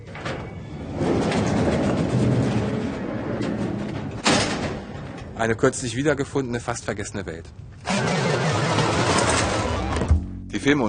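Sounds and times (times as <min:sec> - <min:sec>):
garage door rumbling open: 0:00.0 - 0:05.8, 0:07.8 - 0:10.3
speech: 0:05.4 - 0:07.8, 0:10.6 - 0:10.8.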